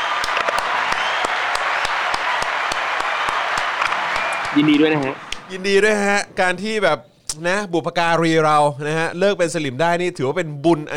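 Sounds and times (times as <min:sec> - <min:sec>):
crowd applause: 0:00.0 - 0:05.8
speech: 0:04.6 - 0:10.9.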